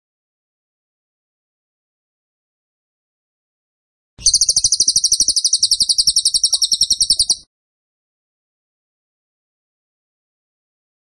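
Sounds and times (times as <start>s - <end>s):
bird trill: 4.2s - 7.5s.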